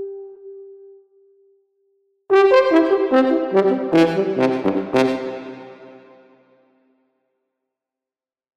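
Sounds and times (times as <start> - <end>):
horn solo: 2.3 - 6.4.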